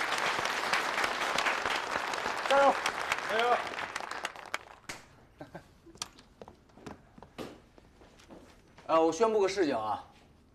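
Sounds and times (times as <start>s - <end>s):
classmates applauding a student in a school classroom: 0.0s - 5.1s
speech: 2.5s - 3.8s, 8.9s - 10.1s.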